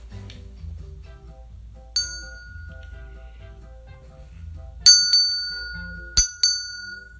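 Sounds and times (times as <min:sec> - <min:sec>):
soft low hum: 0:00.0 - 0:07.1
doorbell ding-dong chiming: 0:02.0 - 0:03.2, 0:04.9 - 0:07.1.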